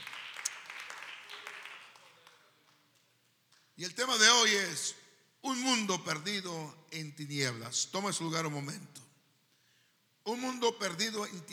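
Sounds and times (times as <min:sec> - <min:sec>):
audience applause: 0:00.0 - 0:02.5
speech: 0:03.8 - 0:09.0, 0:10.3 - 0:11.5.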